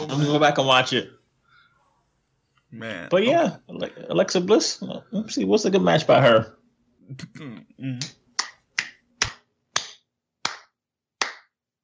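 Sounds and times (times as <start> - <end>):
speech: 0.1 - 1.2, 2.7 - 8.2
hands clapping: 8.0 - 11.6.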